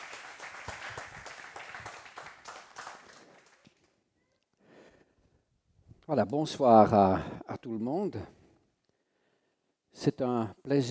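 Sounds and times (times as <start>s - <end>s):
audience applause: 0.0s - 3.7s
speech: 6.1s - 8.4s, 10.0s - 10.8s.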